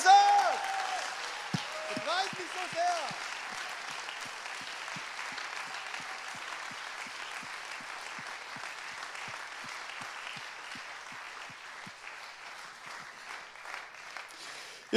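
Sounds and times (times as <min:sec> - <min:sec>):
audience whoops and shouts: 0:00.0 - 0:03.1
audience clapping: 0:00.0 - 0:14.9.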